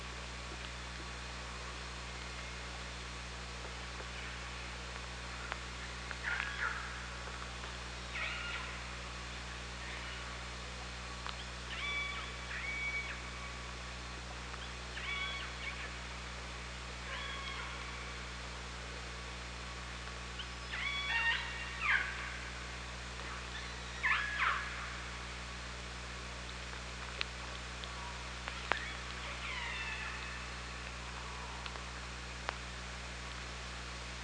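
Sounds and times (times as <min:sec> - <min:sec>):
low constant hum: 0:00.0 - 0:34.2
orca pulsed calls: 0:04.0 - 0:19.6, 0:20.2 - 0:26.3, 0:27.3 - 0:32.4.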